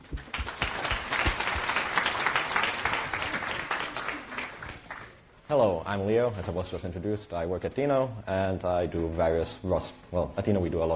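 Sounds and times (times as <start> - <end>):
applause: 0.0 - 5.3
speech: 5.5 - 10.9.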